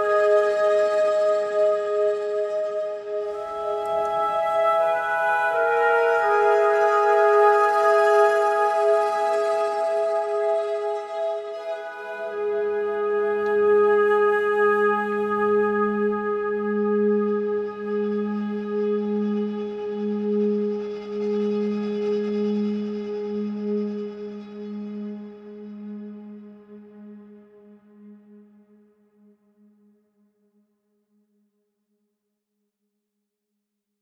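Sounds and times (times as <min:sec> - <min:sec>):
warm flute: 0:00.0 - 0:26.0.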